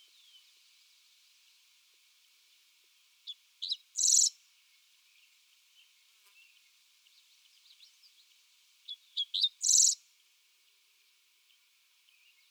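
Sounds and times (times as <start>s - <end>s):
Dickcissel singing: 3.6s - 4.3s, 8.9s - 10.0s.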